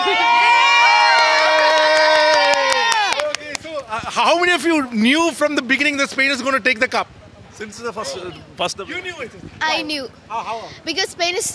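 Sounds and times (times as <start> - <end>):
crowd of football fans cheering and shouting: 0.0 - 3.5
speech: 4.2 - 11.5.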